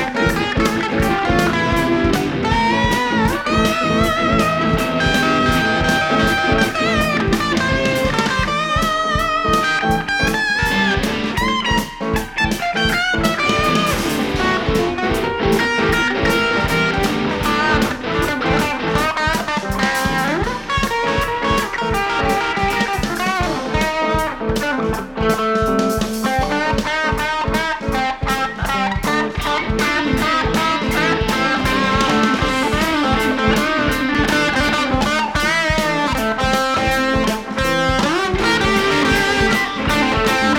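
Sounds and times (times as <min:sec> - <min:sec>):
ambient guitar mix: 0:00.0 - 0:40.5.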